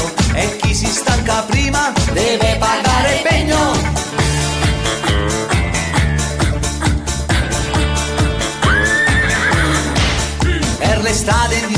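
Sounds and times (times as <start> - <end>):
loud upbeat dance track with a steady pounding beat: 0.0 - 11.7
horse neighing: 8.6 - 10.0.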